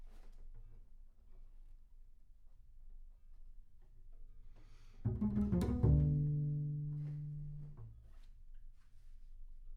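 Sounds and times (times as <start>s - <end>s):
bass sound: 5.1s - 7.8s.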